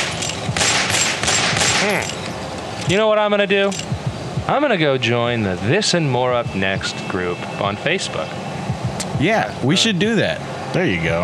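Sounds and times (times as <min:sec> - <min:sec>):
rapid gunfire of police officers shooting: 0:00.0 - 0:02.0
speech: 0:01.8 - 0:02.2, 0:02.9 - 0:08.4, 0:09.2 - 0:11.2.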